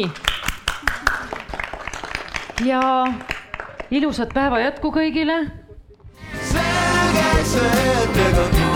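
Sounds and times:
speech: 0.0s - 0.2s, 2.6s - 5.6s, 7.1s - 8.6s
hands clapping: 0.1s - 3.9s.

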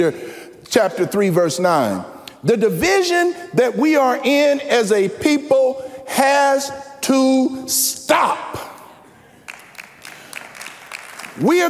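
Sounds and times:
speech: 0.0s - 8.7s, 11.4s - 11.6s
scattered audience clapping: 9.4s - 11.6s.

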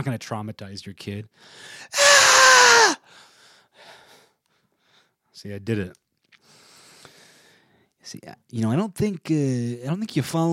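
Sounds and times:
speech: 0.0s - 3.0s, 5.4s - 6.0s, 8.0s - 10.5s
person whisper screaming: 2.0s - 3.0s.

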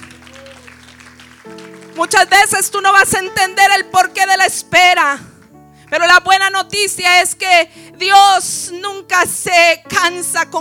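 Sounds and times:
audience applause: 0.0s - 2.5s
speech: 2.0s - 5.3s, 5.9s - 10.5s.

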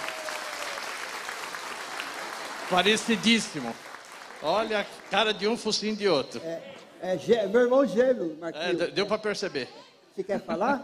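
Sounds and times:
applause: 0.0s - 6.2s
speech: 2.7s - 10.8s.

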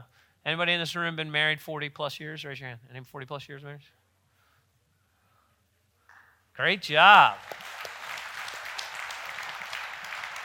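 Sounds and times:
speech: 0.4s - 4.0s, 6.6s - 7.6s
audience applause: 7.4s - 10.4s.

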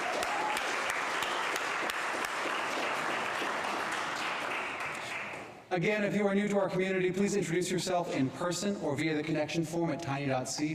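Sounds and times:
audience applause: 0.0s - 5.6s
speech: 5.8s - 10.7s.

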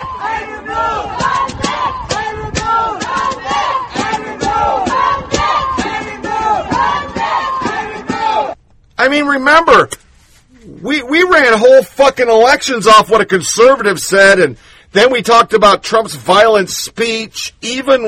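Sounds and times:
protesters screaming through a conduit: 0.0s - 8.6s
speech: 9.0s - 10.0s, 10.8s - 18.0s.

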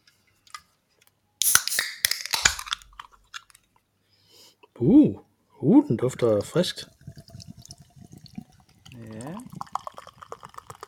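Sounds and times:
small beer can snapping open: 1.4s - 3.6s
speech: 4.8s - 7.0s.

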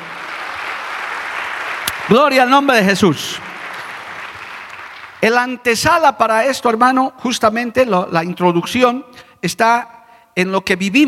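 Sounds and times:
audience applause: 0.0s - 5.2s
speech: 2.1s - 3.4s, 5.2s - 11.0s.

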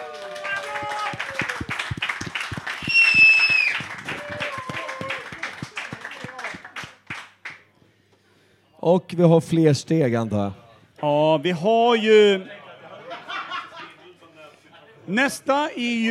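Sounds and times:
audience applause: 0.0s - 7.6s
tonal whoops and whistle-like cries: 2.8s - 5.3s
speech: 8.8s - 12.6s, 15.1s - 16.0s
laughter: 12.4s - 14.3s.

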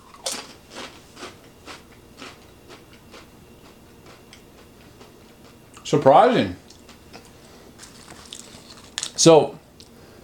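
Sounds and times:
crunching Doritos Tapatio tortilla chips in a taste test: 0.0s - 3.3s, 7.1s - 9.2s
speech: 5.9s - 6.6s, 9.2s - 9.6s.

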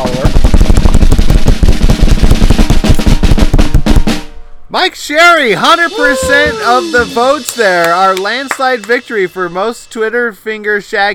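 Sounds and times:
drum roll: 0.0s - 4.6s, 5.5s - 9.2s
speech: 4.8s - 11.1s.

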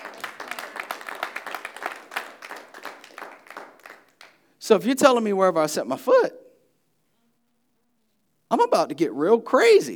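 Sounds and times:
audience clapping: 0.0s - 4.5s
speech: 4.7s - 6.4s, 8.5s - 9.9s.

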